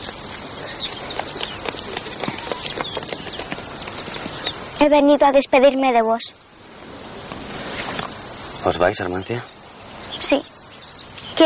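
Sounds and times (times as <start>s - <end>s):
horse hooves of a standing carriage clopping and shuffling: 0.0s - 4.9s
constant hissing background: 0.0s - 11.4s
speech: 4.8s - 6.4s, 8.6s - 9.6s, 10.3s - 10.5s.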